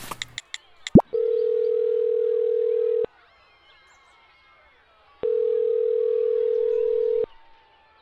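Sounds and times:
phone call ringing unanswered: 1.0s - 3.1s, 5.2s - 7.3s.

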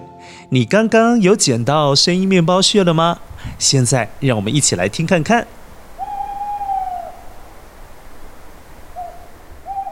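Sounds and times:
speech: 0.5s - 5.6s
owl hooting: 2.8s - 9.9s.

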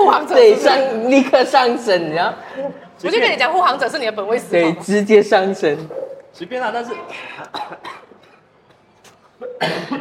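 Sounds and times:
speech: 0.2s - 8.1s, 9.4s - 9.9s
person coughing: 7.5s - 8.5s, 9.4s - 9.9s.

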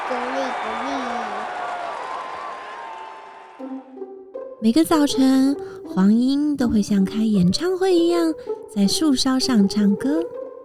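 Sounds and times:
applause: 0.0s - 3.9s
speech: 4.6s - 10.4s.

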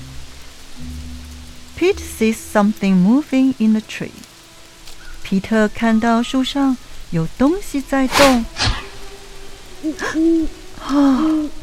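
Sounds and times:
speech: 1.8s - 4.2s, 5.3s - 8.6s, 9.8s - 11.6s
owl hooting: 8.1s - 11.4s.

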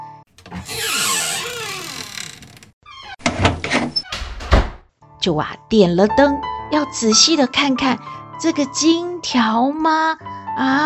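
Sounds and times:
front door creaking: 0.4s - 3.2s
speech: 5.2s - 10.8s.

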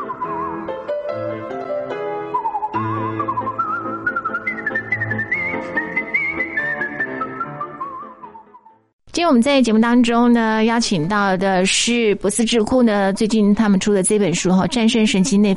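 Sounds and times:
whistling music: 0.0s - 8.9s
speech: 9.2s - 15.5s.

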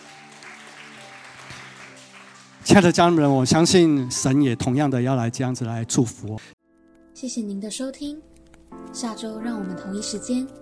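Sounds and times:
crowd applause: 0.0s - 3.6s
speech: 2.6s - 6.5s, 7.2s - 10.5s.

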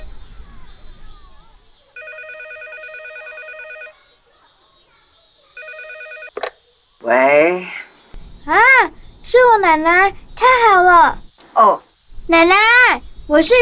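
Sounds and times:
faint hiss: 0.0s - 13.5s
telephone ringback tone: 2.0s - 3.9s, 5.6s - 6.4s
speech: 7.0s - 7.8s, 8.5s - 13.5s.

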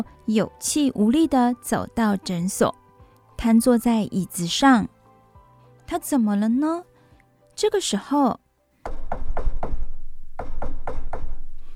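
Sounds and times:
speech: 0.0s - 2.8s, 3.4s - 5.0s, 5.9s - 6.9s, 7.6s - 9.0s
repeated knocking on a door: 8.8s - 11.4s.

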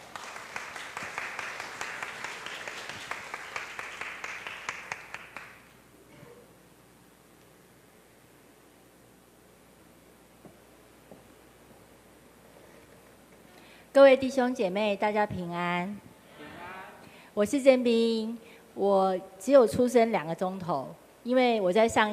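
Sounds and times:
audience applause: 0.0s - 5.7s
speech: 14.0s - 16.1s, 17.4s - 22.1s.

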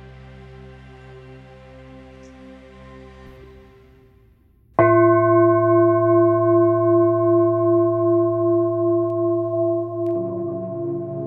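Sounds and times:
singing bowl struck and ringing: 4.8s - 11.2s.

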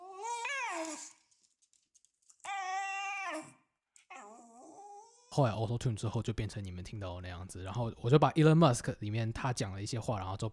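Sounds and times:
Shiba Inu dog whimpering: 0.0s - 1.2s, 2.4s - 5.4s
speech: 5.4s - 10.5s.

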